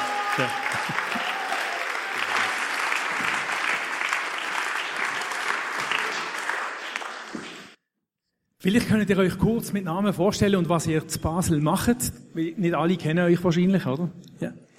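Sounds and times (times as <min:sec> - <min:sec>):
audience applause: 0:00.0 - 0:07.8
speech: 0:00.4 - 0:01.0, 0:08.6 - 0:14.6.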